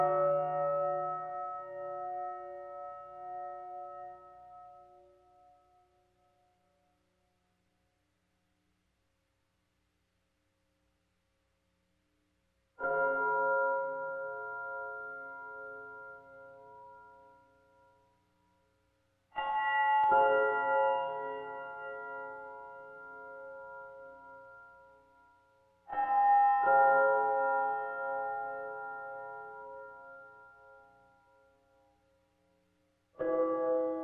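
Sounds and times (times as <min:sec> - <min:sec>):
mysterious bells: 0:00.0 - 0:05.7, 0:12.8 - 0:18.4, 0:19.4 - 0:31.7, 0:33.2 - 0:34.0.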